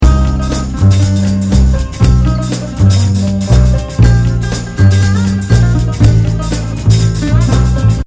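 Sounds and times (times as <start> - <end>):
music loop: 0.0 - 8.0.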